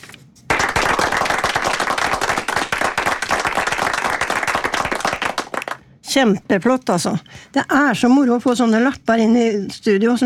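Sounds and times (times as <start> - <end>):
small group applauding in the studio: 0.5 - 5.9
speech: 6.2 - 10.2.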